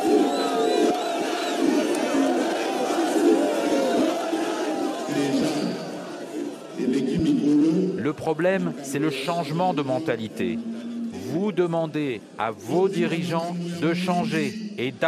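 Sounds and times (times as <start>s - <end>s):
whistles: 0.0s - 2.0s
large crowd roaring and cheering: 0.0s - 15.0s
speech: 8.2s - 15.0s.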